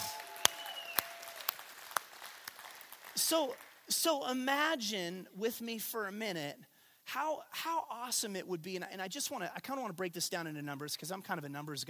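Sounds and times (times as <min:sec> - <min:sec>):
audience applause: 0:00.0 - 0:03.9
speech: 0:03.2 - 0:11.8.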